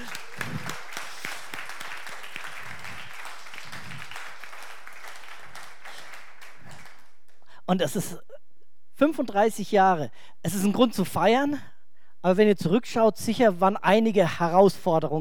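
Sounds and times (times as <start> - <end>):
audience clapping: 0.0 - 7.5
speech: 7.7 - 8.3, 9.0 - 15.1.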